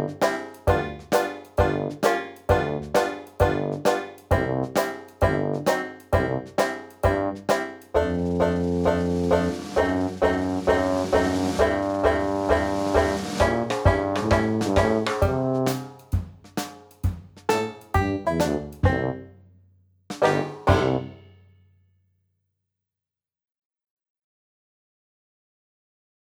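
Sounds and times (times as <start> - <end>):
Dixieland backing music: 0.0 - 16.1, 17.4 - 19.3, 20.1 - 21.4.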